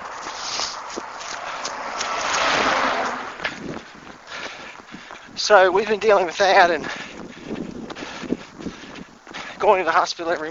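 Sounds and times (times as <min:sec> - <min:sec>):
bus passing in traffic: 0:00.0 - 0:04.9
footsteps: 0:00.0 - 0:10.4
street clatter: 0:00.0 - 0:10.4
speech: 0:05.5 - 0:07.0, 0:09.6 - 0:10.4.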